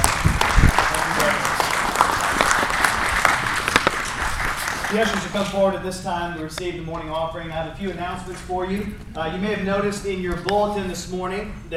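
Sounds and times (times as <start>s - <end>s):
audience applause: 0.0s - 5.5s
speech: 4.9s - 11.7s.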